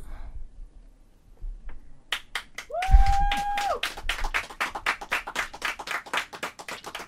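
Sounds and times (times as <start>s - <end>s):
loud applause: 2.6s - 7.0s.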